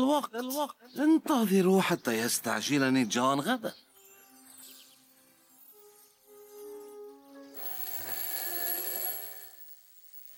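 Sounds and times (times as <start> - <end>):
speech: 0.0 - 3.9
alarm clock ringing: 7.5 - 10.3.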